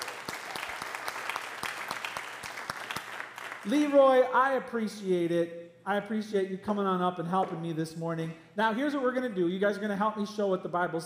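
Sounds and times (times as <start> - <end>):
audience round of applause: 0.0 - 3.7
speech: 3.6 - 11.0.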